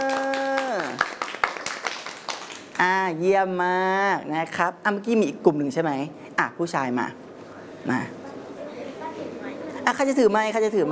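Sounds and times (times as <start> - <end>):
hand clapping: 0.0 - 2.8
speech: 2.8 - 7.2, 7.8 - 8.2, 9.9 - 10.9.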